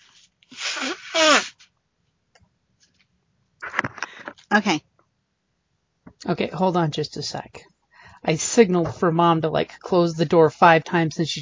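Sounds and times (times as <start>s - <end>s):
person blowing nose: 0.0s - 1.7s
speech: 4.5s - 4.9s, 6.2s - 11.3s.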